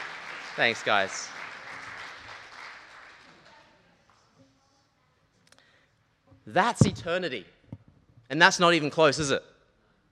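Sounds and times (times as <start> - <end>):
audience applause: 0.0 - 3.7
speech: 0.6 - 1.4, 6.4 - 7.5, 8.3 - 9.5.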